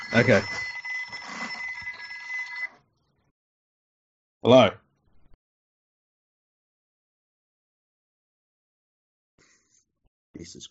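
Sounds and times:
telephone bell ringing: 0.0 - 2.8
speech: 0.1 - 0.6, 4.4 - 4.8, 10.4 - 10.6.

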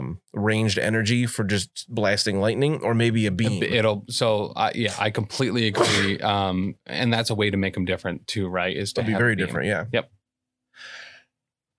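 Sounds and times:
speech: 0.2 - 10.2, 10.8 - 11.0
person sneezing: 5.7 - 6.2.

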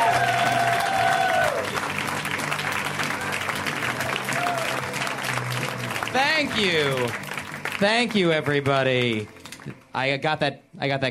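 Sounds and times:
audience applause at a live comedy show: 0.0 - 9.8
speech: 6.4 - 11.0.

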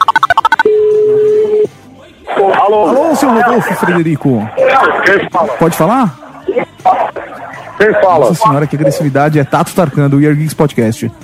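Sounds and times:
voicemail signal tones: 0.0 - 1.7, 8.7 - 9.2
speech: 2.7 - 11.2.

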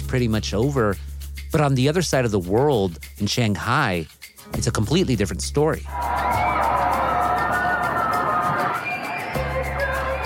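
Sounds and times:
speech: 0.1 - 6.3
people in Shanghai screaming and yelling from lockdown apartments: 5.9 - 10.2.

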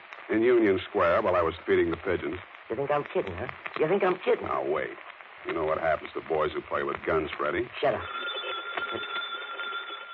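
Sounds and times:
speech: 0.3 - 8.2, 8.9 - 9.2
telephone ringing with a trilling bell tone: 7.8 - 10.1.

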